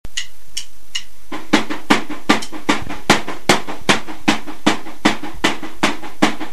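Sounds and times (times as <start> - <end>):
drums: 0.1 - 6.5.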